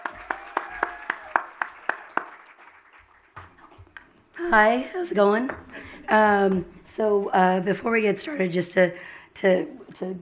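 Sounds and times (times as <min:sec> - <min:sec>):
hands clapping: 0:00.0 - 0:03.7
speech: 0:04.4 - 0:10.1.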